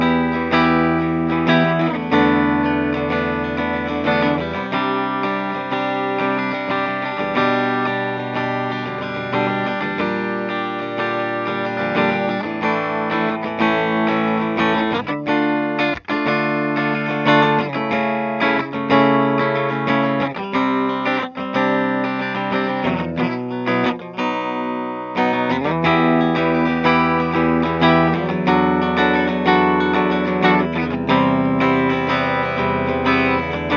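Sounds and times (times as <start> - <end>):
clean guitar on bridge pickups: 0.0 - 33.7.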